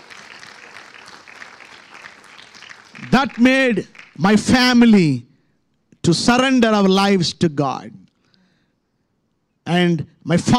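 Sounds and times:
audience clapping: 0.0s - 5.2s
speech: 3.1s - 5.3s, 6.0s - 8.0s, 9.6s - 10.5s.

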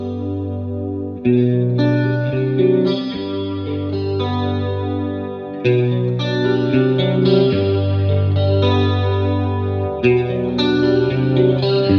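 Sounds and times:
electric guitar chords played through a chorus effect pedal: 0.0s - 11.9s.

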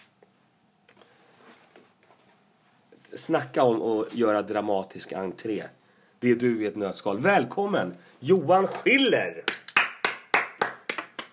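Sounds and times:
speech: 3.1s - 9.5s
one person clapping hands: 9.4s - 11.3s.

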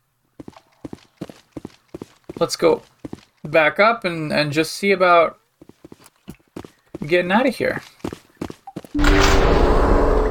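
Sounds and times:
speech: 2.4s - 5.4s, 7.0s - 8.0s
door opening: 9.0s - 10.2s.

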